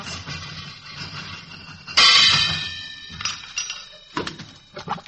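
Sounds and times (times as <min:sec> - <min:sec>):
metallic bang on a plumbing pipe joint: 0:01.9 - 0:04.7.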